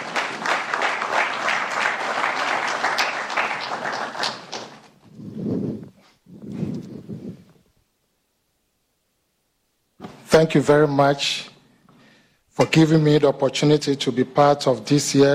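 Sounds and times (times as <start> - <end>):
audience round of applause: 0.0 - 4.9
speech: 10.4 - 11.5, 12.6 - 15.3.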